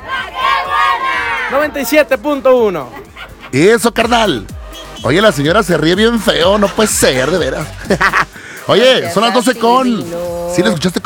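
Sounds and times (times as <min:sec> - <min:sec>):
crowd shouting loudly together: 0:00.0 - 0:02.0
speech: 0:01.6 - 0:11.0
laughter: 0:02.8 - 0:03.6, 0:05.8 - 0:08.7.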